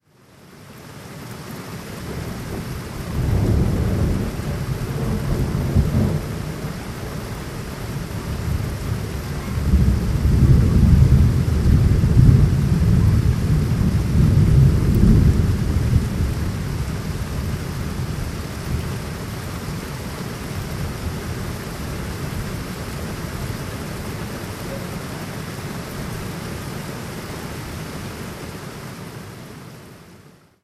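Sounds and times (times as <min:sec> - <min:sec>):
heavy rain: 0:00.0 - 0:30.6
distant thunder: 0:02.1 - 0:19.0.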